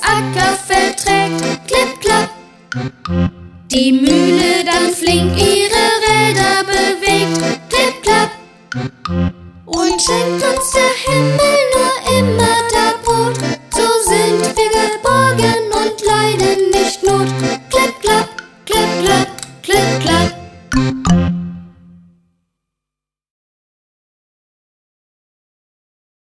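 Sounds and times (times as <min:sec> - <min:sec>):
folk song: 0:00.0 - 0:02.9, 0:03.7 - 0:08.9, 0:09.6 - 0:21.8.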